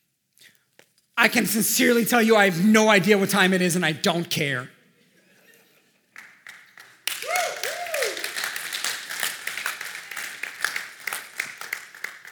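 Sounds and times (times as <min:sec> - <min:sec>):
speech: 0:01.2 - 0:04.8
audience clapping: 0:06.1 - 0:12.3
whoops or whistles: 0:07.1 - 0:08.3.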